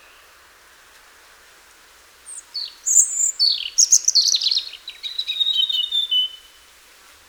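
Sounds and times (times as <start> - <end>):
European robin singing trills and whistles: 2.3 - 6.5.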